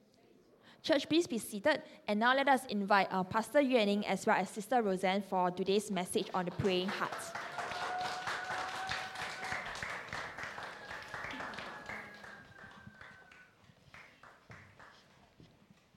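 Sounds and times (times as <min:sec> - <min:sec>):
speech: 0:00.8 - 0:07.4
audience clapping: 0:06.3 - 0:15.2
audience cheering: 0:06.7 - 0:13.5.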